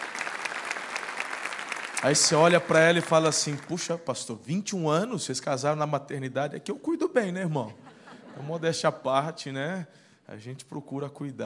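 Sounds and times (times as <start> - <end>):
audience applause: 0.0 - 3.9
speech: 2.0 - 7.8, 8.4 - 11.4
laughter: 7.4 - 8.8.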